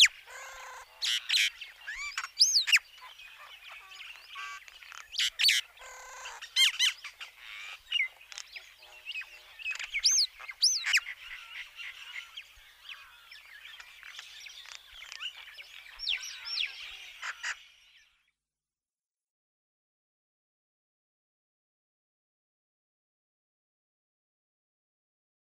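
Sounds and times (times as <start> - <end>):
Common Myna singing: 0.0 - 18.4.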